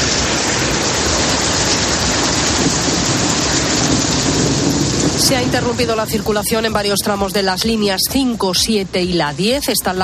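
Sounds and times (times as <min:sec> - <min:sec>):
hail falling: 0:00.0 - 0:08.0
speech: 0:05.3 - 0:10.0.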